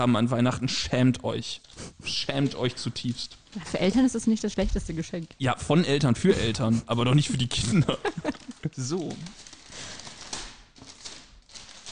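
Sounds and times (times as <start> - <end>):
speech: 0.0 - 9.4
gift wrapping paper rustling and tearing: 1.6 - 5.4, 7.2 - 11.9
laughter: 6.5 - 9.3.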